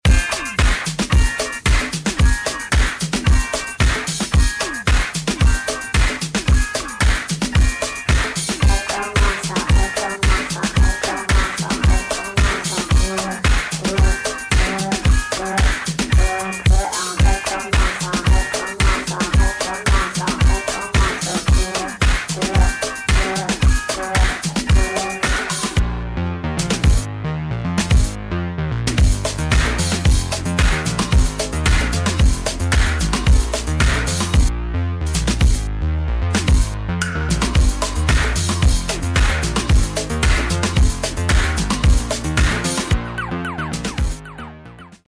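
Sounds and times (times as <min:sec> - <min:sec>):
instrumental music: 0:00.0 - 0:45.0.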